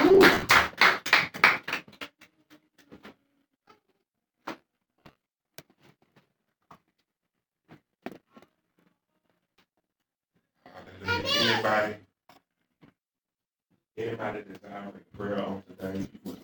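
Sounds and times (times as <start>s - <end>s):
audience hand clapping: 0.0s - 2.4s
speech: 14.2s - 16.4s.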